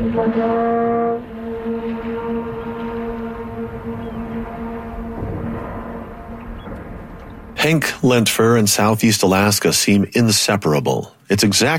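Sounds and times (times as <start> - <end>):
speech: 0.0 - 1.3, 7.6 - 11.7
long note echoing between rock walls: 0.0 - 7.6.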